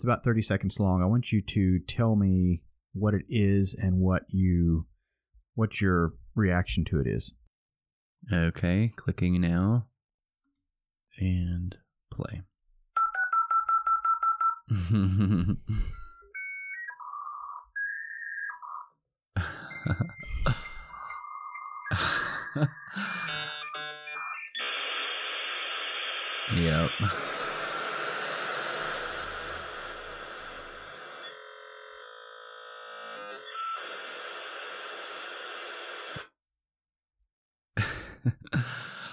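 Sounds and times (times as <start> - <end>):
speech: 0.0 - 4.9, 5.6 - 7.4, 8.2 - 9.9, 11.2 - 12.5, 14.7 - 16.0, 19.4 - 20.7, 22.0 - 23.2, 26.6 - 27.4
dial-up modem connecting with dial tone and handshake tones: 13.0 - 14.7, 19.6 - 36.3.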